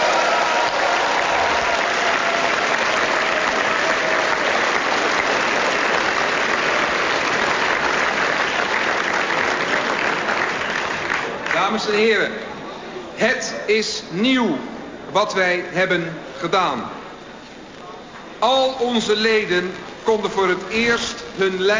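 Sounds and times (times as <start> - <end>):
audience applause: 0.0 - 11.8
speech: 11.9 - 12.4, 13.2 - 17.0, 18.4 - 21.7.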